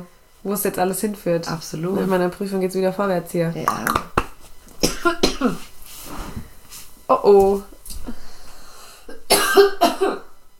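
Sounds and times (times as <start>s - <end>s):
speech: 0.0s - 4.1s, 7.2s - 7.7s
small cough: 4.8s - 5.7s, 9.1s - 10.3s.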